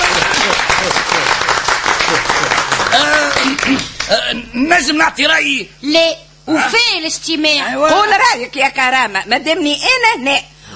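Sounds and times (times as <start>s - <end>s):
group applause: 0.0s - 4.3s
speech: 4.1s - 10.5s.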